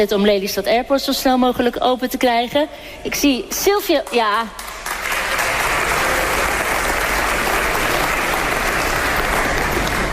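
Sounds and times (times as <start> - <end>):
speech: 0.0 - 4.8
audience applause: 4.6 - 10.1.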